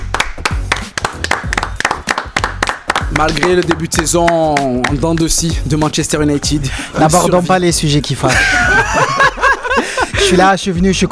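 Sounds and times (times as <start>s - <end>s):
applause: 0.0s - 5.3s
speech: 3.1s - 9.1s, 10.2s - 11.1s
laughter: 8.2s - 10.5s.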